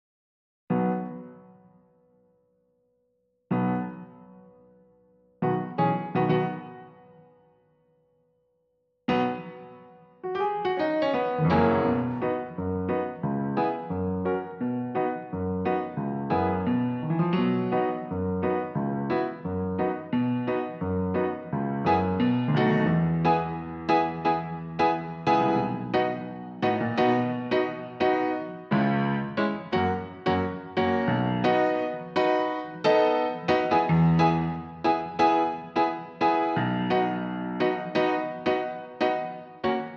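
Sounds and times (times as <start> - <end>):
piano: 0.7 - 39.9.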